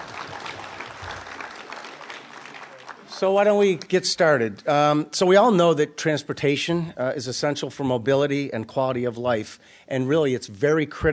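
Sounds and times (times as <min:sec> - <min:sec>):
audience applause: 0:00.0 - 0:03.8
speech: 0:03.2 - 0:11.1.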